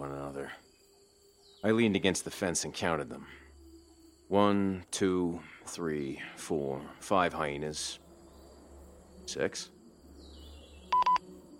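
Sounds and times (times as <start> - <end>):
speech: 1.6 - 3.4, 4.3 - 8.0, 9.3 - 9.8
walkie-talkie buzz beeps: 10.9 - 11.2.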